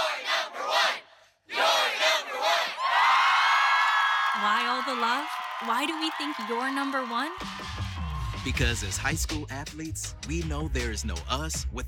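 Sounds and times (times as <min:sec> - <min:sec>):
crowd cheering: 0:00.0 - 0:09.2
speech: 0:04.4 - 0:07.8, 0:08.4 - 0:11.8.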